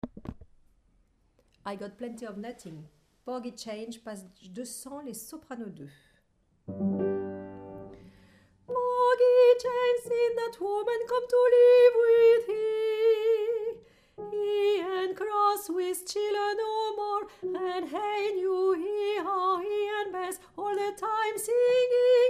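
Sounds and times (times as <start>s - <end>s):
soprano singing: 8.7s - 22.2s.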